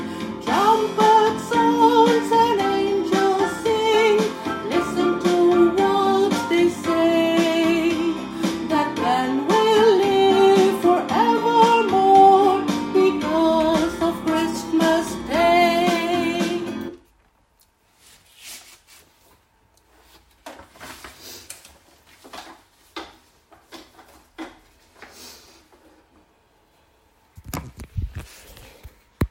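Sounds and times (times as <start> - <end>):
sopranos singing: 0.4 - 16.9.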